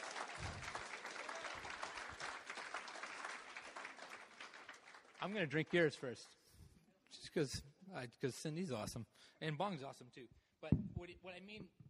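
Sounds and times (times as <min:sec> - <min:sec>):
crowd clapping: 0:00.0 - 0:06.4
speech: 0:05.2 - 0:06.4, 0:07.4 - 0:11.8.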